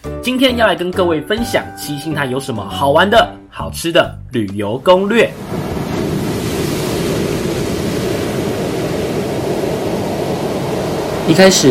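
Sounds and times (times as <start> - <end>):
speech: 0.2 - 5.5, 11.3 - 11.6
ocean waves at Qixingtan beach: 5.1 - 11.6.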